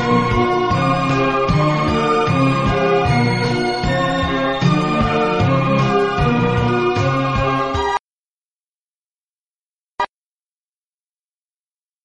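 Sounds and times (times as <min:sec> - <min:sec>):
instrumental music: 0:00.0 - 0:08.0.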